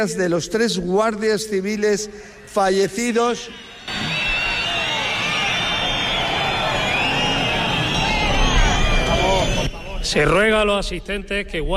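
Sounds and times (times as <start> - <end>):
speech: 0.0 - 4.0, 10.1 - 11.7
crowd whistling: 2.7 - 11.0
crowd booing: 3.3 - 10.0.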